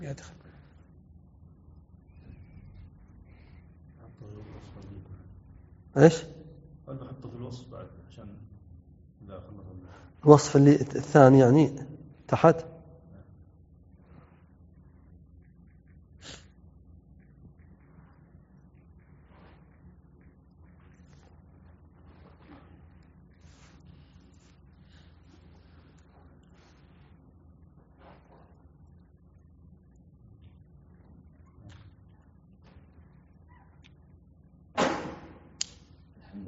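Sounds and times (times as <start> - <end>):
speech: 0.0 - 0.4, 6.0 - 8.4, 9.3 - 12.7
low steady rumble: 0.0 - 34.8
sneeze: 16.2 - 16.5.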